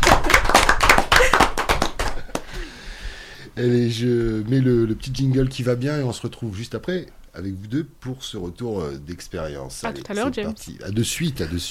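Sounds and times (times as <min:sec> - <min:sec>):
hand clapping: 0:00.0 - 0:02.7
speech: 0:03.6 - 0:11.6.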